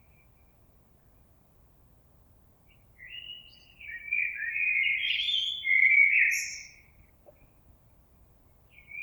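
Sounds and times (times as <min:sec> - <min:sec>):
common blackbird singing fluty phrases: 0:03.0 - 0:06.9.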